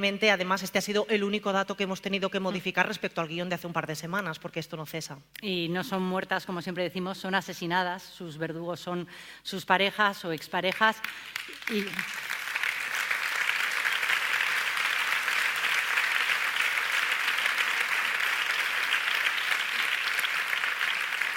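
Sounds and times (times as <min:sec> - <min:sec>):
speech: 0:00.0 - 0:12.4
audience clapping: 0:10.7 - 0:21.3.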